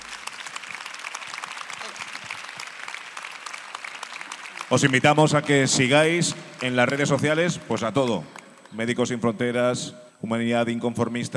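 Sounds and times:
audience applause: 0:00.0 - 0:08.6
speech: 0:04.7 - 0:11.3.

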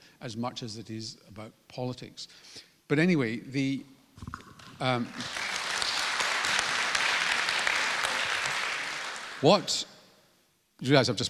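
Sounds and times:
speech: 0:00.2 - 0:05.4, 0:09.4 - 0:09.9, 0:10.8 - 0:11.2
audience applause during a talk about community and the Voice: 0:04.6 - 0:09.8.

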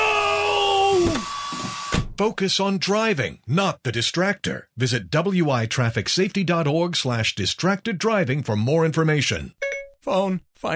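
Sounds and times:
portable hairdryer running: 0:00.3 - 0:02.1
speech: 0:02.2 - 0:10.7.

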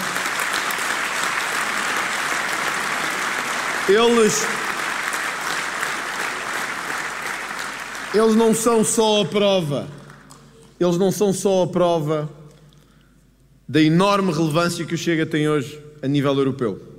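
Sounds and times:
audience applause: 0:00.0 - 0:09.0
speech: 0:03.9 - 0:04.7, 0:08.1 - 0:10.0, 0:10.8 - 0:12.4, 0:13.7 - 0:16.9.

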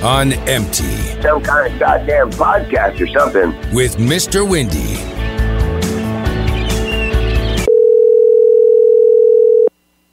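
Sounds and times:
speech: 0:00.0 - 0:05.2
busy dense music: 0:00.0 - 0:07.7
telephone dial tone before a call: 0:07.7 - 0:09.7.

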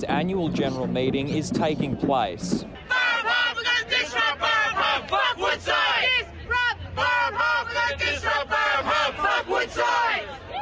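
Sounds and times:
speech: 0:00.0 - 0:03.0
protest crowd chanting outside casino: 0:02.8 - 0:10.5.

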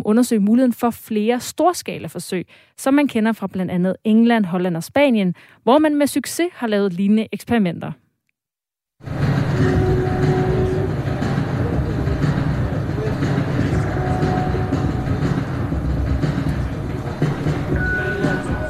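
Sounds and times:
speech: 0:00.0 - 0:08.0
sound art installation of railway sleepers rumbling and clattering: 0:09.1 - 0:17.7
faint sustained tones: 0:09.1 - 0:18.6.

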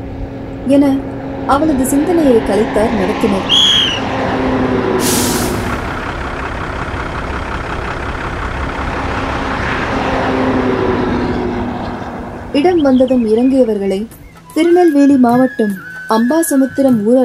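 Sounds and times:
bus engine rumbling as the bus pulls up: 0:00.0 - 0:17.2
speech: 0:00.7 - 0:03.8, 0:12.6 - 0:17.2
bus air brakes hissing: 0:03.5 - 0:04.0, 0:05.0 - 0:06.0.

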